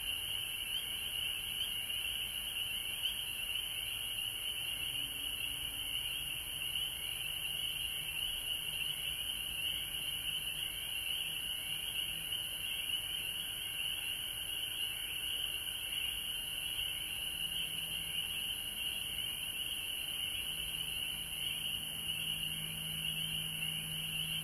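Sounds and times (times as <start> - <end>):
frogs trilling chorus: 0.0 - 24.4.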